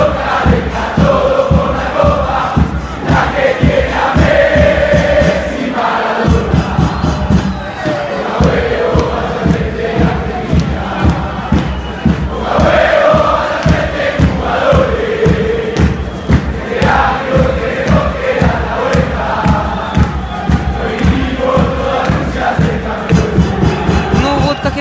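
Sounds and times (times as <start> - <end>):
football fans chanting and singing outside hotel: 0.0 - 24.7.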